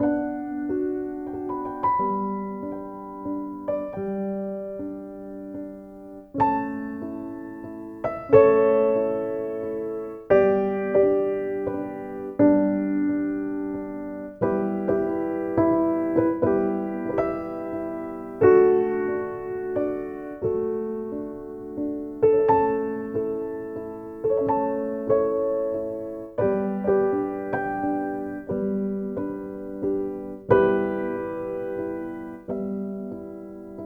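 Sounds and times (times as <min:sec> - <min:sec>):
solo piano: 0:00.0 - 0:33.8.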